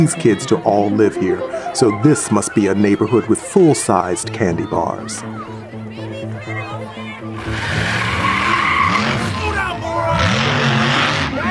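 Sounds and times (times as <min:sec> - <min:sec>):
speech: 0:00.0 - 0:05.7
truck speeding down the street: 0:07.4 - 0:11.4.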